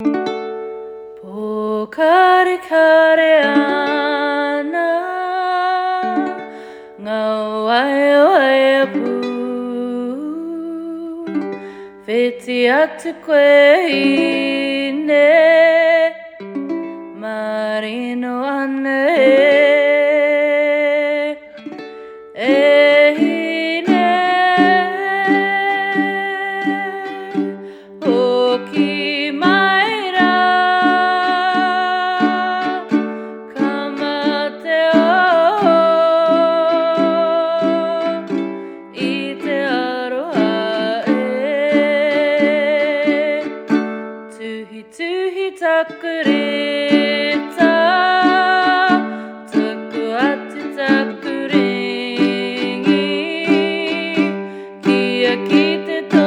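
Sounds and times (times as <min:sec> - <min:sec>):
ukulele: 0:00.0 - 0:56.2.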